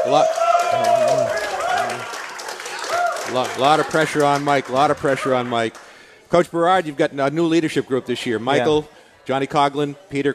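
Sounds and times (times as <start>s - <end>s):
crowd of teammates clapping and cheering: 0.0s - 6.3s
speech: 0.1s - 1.1s, 3.3s - 10.3s.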